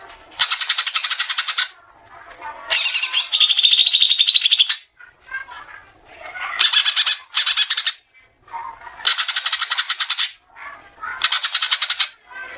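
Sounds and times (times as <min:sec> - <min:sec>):
Oriental magpie-robin giving harsh rasping churrs: 0:00.0 - 0:01.8, 0:02.7 - 0:04.9, 0:06.4 - 0:08.0, 0:08.8 - 0:12.5.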